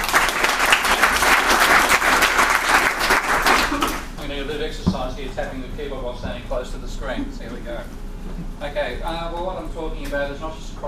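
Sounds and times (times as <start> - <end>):
audience applause: 0.0 - 4.1
speech: 5.4 - 10.8.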